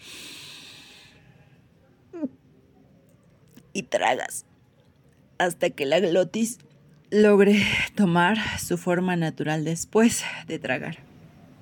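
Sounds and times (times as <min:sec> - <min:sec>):
deep airy breath drawn in: 0:00.0 - 0:01.7
speech: 0:03.8 - 0:04.5, 0:05.4 - 0:11.1.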